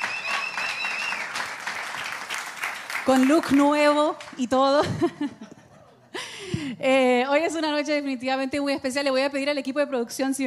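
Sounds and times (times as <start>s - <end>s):
audience applause: 0.0s - 3.8s
speech: 3.1s - 5.5s, 6.7s - 10.4s
laughter: 4.8s - 6.4s.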